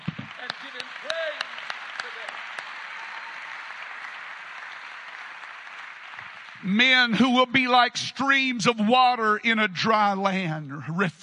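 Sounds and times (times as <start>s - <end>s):
audience clapping hands: 0.0s - 7.9s
speech: 6.6s - 11.2s.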